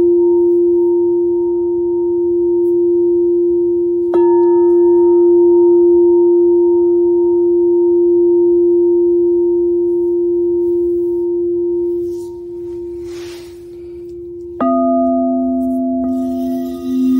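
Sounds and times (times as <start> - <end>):
Venus Gong: 0.0 - 17.1
crystal and Tibetan singing bowls: 0.0 - 17.1.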